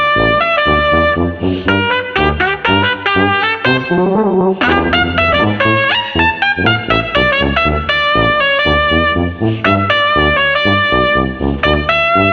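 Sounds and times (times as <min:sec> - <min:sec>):
street trumpet combo playing oompa music without drums: 0:00.0 - 0:12.3.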